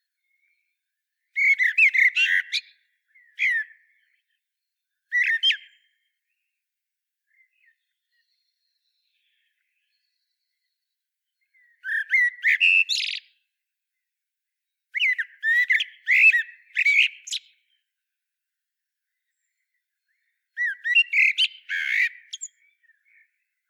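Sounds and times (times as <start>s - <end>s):
common blackbird singing: 0.0s - 6.6s, 7.2s - 13.6s, 14.7s - 18.0s, 19.1s - 23.6s.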